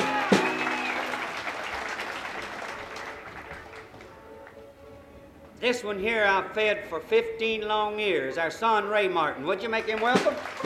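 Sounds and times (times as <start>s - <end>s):
audience applause for a banjo player at a live music show: 0.0s - 4.6s, 9.8s - 10.6s
speech: 5.6s - 10.6s.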